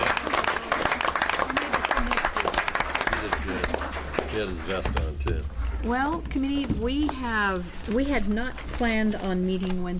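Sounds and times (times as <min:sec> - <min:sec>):
round of applause: 0:00.0 - 0:04.8
speech: 0:04.4 - 0:09.9.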